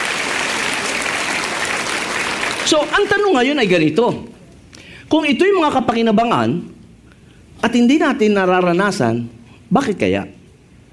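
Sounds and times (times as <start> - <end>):
congregation clapping during a church worship service: 0.0 - 3.7
speech: 2.7 - 4.4, 5.1 - 6.8, 7.6 - 10.4.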